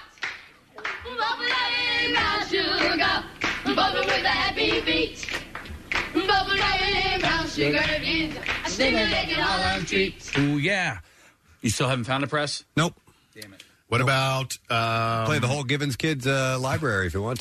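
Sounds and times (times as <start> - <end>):
rhythmic hand clapping on beats one and three: 0.0 - 10.7
speech: 6.4 - 17.3.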